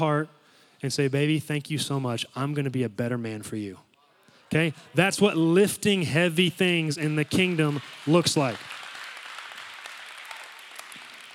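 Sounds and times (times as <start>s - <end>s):
speech: 0.0s - 3.9s, 4.5s - 8.8s
audience of women clapping: 7.2s - 11.3s.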